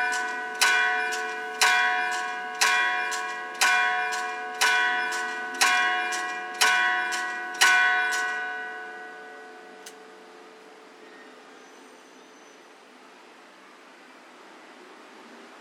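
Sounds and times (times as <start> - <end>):
bell: 0.0 - 10.4.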